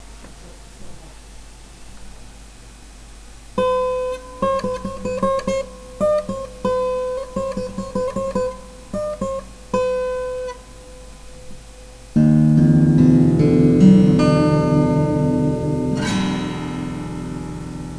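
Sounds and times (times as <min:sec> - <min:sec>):
guitar playing: 0:03.6 - 0:17.9.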